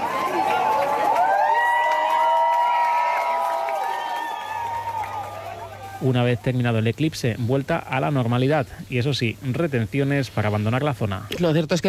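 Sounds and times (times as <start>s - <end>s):
scattered clapping: 0.0s - 5.8s
crowd cheering and whooping after eclipse: 0.0s - 6.1s
speech: 6.0s - 11.8s.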